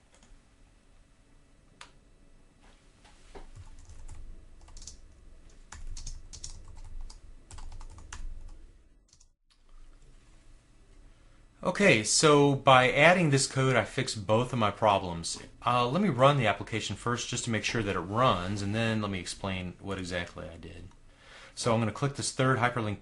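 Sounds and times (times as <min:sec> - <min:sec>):
typing code on a computer keyboard: 0:03.6 - 0:05.0, 0:05.7 - 0:09.3
speech: 0:11.7 - 0:21.0, 0:21.6 - 0:23.0.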